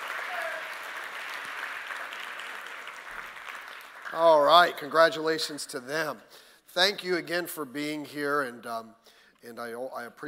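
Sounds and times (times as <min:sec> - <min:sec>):
church congregation clapping for an engaged couple: 0:00.0 - 0:05.6
speech: 0:04.1 - 0:10.2.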